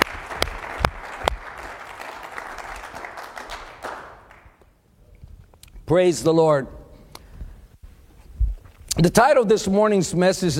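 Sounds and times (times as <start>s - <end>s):
audience clapping: 0.0s - 4.8s
speech: 5.9s - 6.8s, 9.0s - 10.5s.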